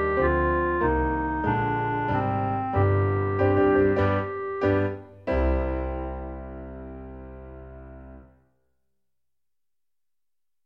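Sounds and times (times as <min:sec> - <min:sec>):
clarinet: 0:00.0 - 0:06.0.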